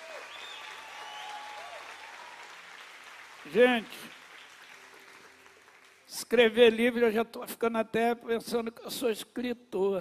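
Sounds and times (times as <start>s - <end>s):
audience applause: 0.0s - 6.2s
speech: 3.4s - 4.2s, 6.1s - 9.9s.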